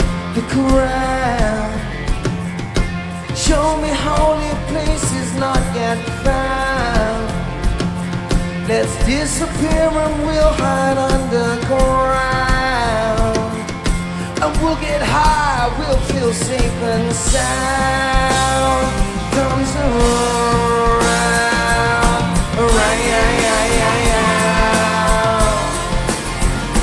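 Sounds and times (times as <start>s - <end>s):
soul singing: 0.2s - 26.8s.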